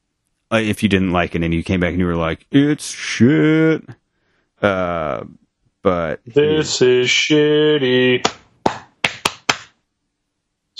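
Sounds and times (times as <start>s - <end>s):
speech: 0.5s - 4.0s, 4.6s - 8.4s
hands clapping: 8.2s - 9.8s.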